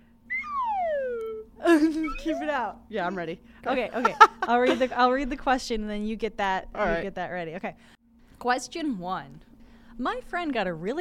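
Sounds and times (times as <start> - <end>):
descending slide whistle: 0.3 - 2.7
speech: 1.8 - 10.9.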